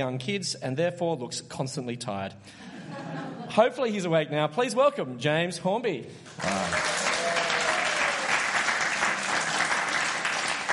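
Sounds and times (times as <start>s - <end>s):
speech: 0.0s - 6.8s
laughter: 2.6s - 3.6s
audience applause: 6.3s - 10.7s.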